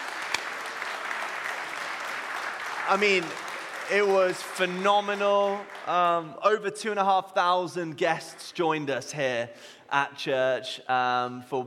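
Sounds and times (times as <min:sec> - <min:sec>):
audience applauding: 0:00.0 - 0:06.4
speech: 0:02.9 - 0:11.6.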